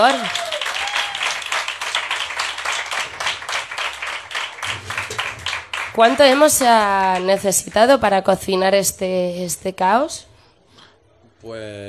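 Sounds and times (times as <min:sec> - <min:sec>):
audience applause: 0:00.0 - 0:07.4
speech: 0:06.0 - 0:10.3, 0:11.4 - 0:11.8.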